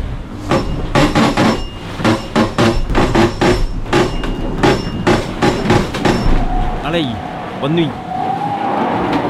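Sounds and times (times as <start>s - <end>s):
sailboat hull resonating: 0.0s - 9.2s
ropes slipping on sailboat winches: 0.5s - 6.8s
speech: 6.9s - 8.0s.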